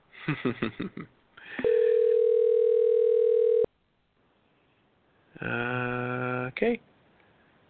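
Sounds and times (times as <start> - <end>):
speech: 0.3 - 1.7, 5.4 - 5.7, 6.5 - 6.9
electronic telephone ring tone: 1.6 - 3.7
short voice-like bursts: 5.4 - 6.6.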